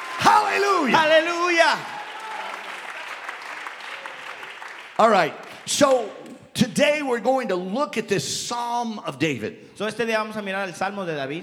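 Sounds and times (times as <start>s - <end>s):
church congregation clapping hands: 0.0s - 6.4s
speech: 0.5s - 2.0s, 5.0s - 11.4s.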